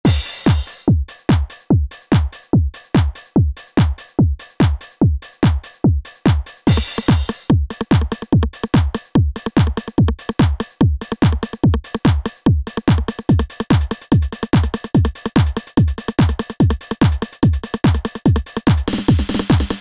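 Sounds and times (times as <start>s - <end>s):
d909 drum machine kit: 0.0s - 19.8s.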